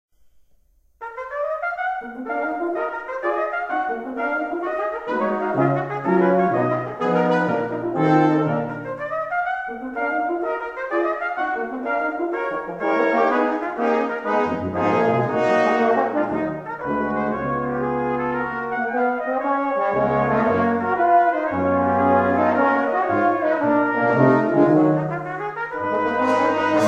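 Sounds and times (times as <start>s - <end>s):
quintet playing variations: 1.0s - 26.8s.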